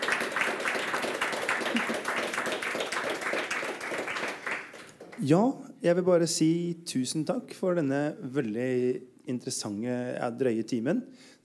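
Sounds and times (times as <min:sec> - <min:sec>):
audience applause for panel: 0:00.0 - 0:05.2
speech: 0:05.2 - 0:11.4.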